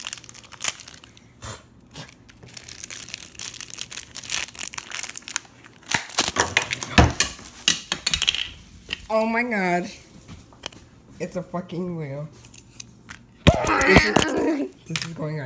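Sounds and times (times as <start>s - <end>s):
crinkly plastic packaging unwrapping: 0.0s - 1.4s, 2.0s - 7.7s
speech: 9.1s - 10.0s, 11.2s - 12.4s, 13.6s - 15.4s.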